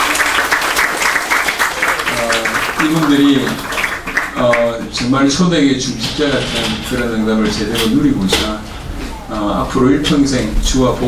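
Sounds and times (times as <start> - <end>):
church congregation applauding newly ordained officers: 0.0 - 5.3
speech: 2.8 - 3.8, 4.4 - 8.7, 9.5 - 11.0.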